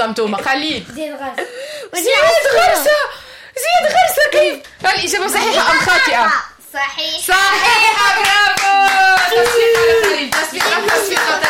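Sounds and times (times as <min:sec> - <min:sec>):
speech: 0:00.0 - 0:11.4
audience clapping at a children's quiz game: 0:08.0 - 0:11.4.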